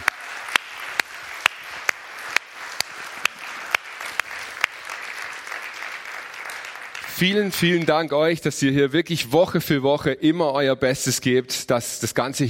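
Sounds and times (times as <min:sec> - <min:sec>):
audience applauding: 0:00.0 - 0:08.1
speech: 0:07.2 - 0:12.4.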